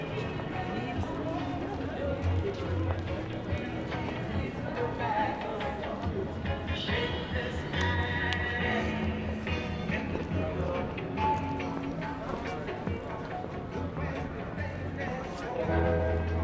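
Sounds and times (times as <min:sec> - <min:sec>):
Carnaby Street ambience: 0:00.0 - 0:16.4.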